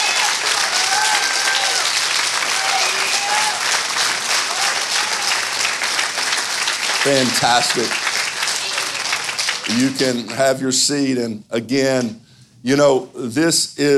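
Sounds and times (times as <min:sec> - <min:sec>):
audience applauding, hand clapping: 0:00.0 - 0:10.6
speech: 0:07.0 - 0:08.1, 0:09.7 - 0:13.9.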